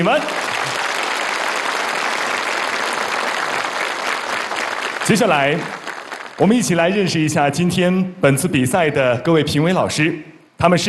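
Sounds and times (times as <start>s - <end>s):
speech: 0.0s - 0.4s, 5.1s - 5.8s, 6.4s - 10.8s
warm applause: 0.0s - 6.9s.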